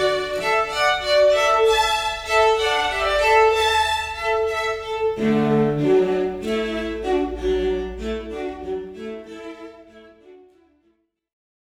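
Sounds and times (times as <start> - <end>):
quartet playing a hornpipe: 0.0 - 9.3.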